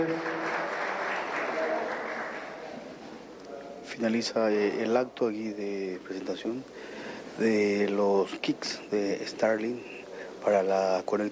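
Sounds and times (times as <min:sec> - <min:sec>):
audience applause: 0:00.0 - 0:03.2
speech: 0:04.0 - 0:11.2.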